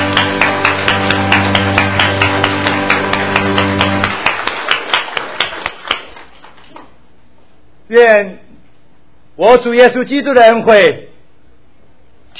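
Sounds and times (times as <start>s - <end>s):
sustained low musical tone: 0.0s - 4.5s
audience clapping: 0.0s - 7.0s
speech: 7.9s - 8.4s, 9.4s - 11.1s.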